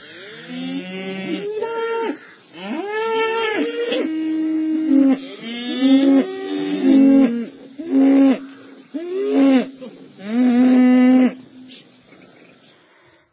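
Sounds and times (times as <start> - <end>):
village herd of cattle lowing: 0.0 - 11.6.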